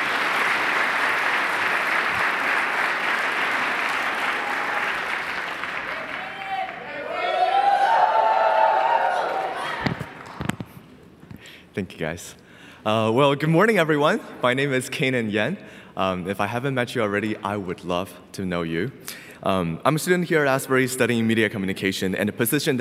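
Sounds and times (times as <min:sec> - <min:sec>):
audience applause: 0:00.0 - 0:10.5
speech: 0:11.8 - 0:22.7.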